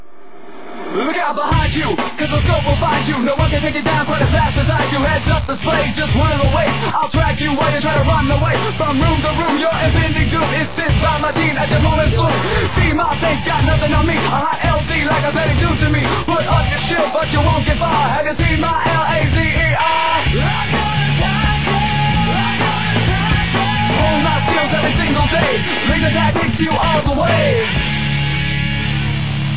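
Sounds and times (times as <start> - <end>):
song without effects: 0.0 - 29.5.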